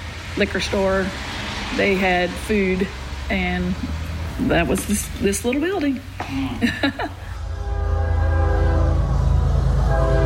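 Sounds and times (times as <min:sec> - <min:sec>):
train passing through town: 0:00.0 - 0:10.2
speech: 0:00.4 - 0:07.2
laughter: 0:06.2 - 0:07.4
train horn blowing: 0:07.4 - 0:10.2.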